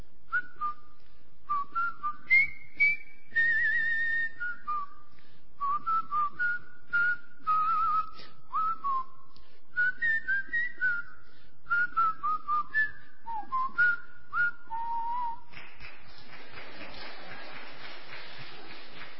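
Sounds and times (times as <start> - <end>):
person whistling a march: 0.3 - 15.5.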